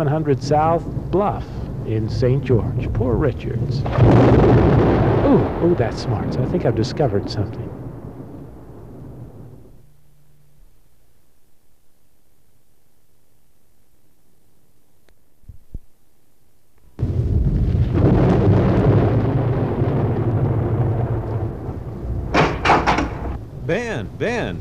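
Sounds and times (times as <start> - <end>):
speech: 0.0 - 7.8
heavy rain roaring: 0.0 - 9.8, 17.0 - 24.5
low rumble: 0.0 - 9.9, 17.0 - 24.5.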